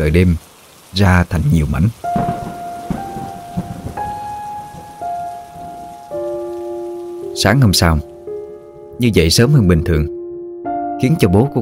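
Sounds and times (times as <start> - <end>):
speech: 0.0 - 2.1, 7.4 - 8.1, 9.0 - 10.2, 11.0 - 11.5
heavy rain: 0.0 - 8.9
thunder: 2.1 - 5.9.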